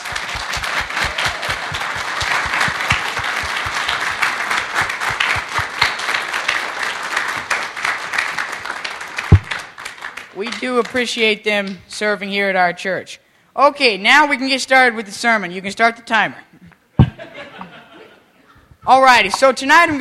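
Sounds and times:
church audience applause: 0.0s - 10.6s
speech: 10.5s - 16.6s, 18.9s - 19.9s
laughter: 17.0s - 18.7s.

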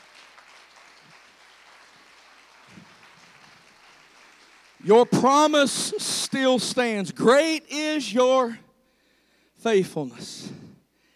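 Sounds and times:
audience hand clapping: 0.0s - 5.6s
speech: 4.8s - 8.6s, 9.6s - 10.6s.

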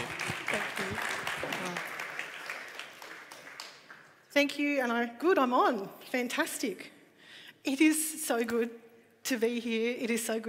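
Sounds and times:
audience applause: 0.0s - 4.2s
speech: 4.4s - 7.0s, 7.6s - 10.4s.

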